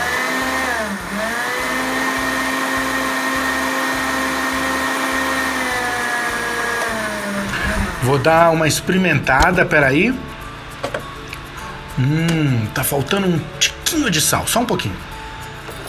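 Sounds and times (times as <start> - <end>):
blender pureeing cooked zucchini with onion and fresh basil: 0.0 - 8.5
speech: 8.0 - 10.3, 12.0 - 15.1.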